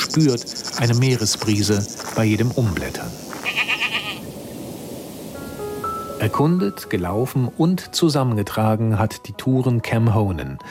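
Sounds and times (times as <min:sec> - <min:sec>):
speech: 0:00.2 - 0:03.2, 0:06.2 - 0:10.6
wild goat bleating: 0:03.3 - 0:04.3.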